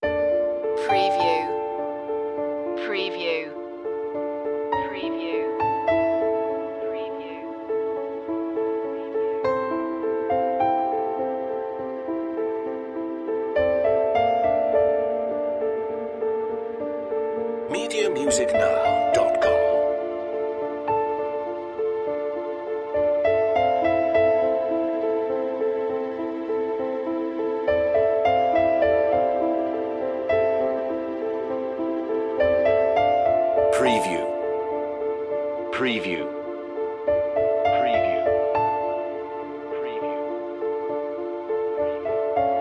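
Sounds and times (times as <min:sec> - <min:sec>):
autumn piano music: 0:00.0 - 0:42.5.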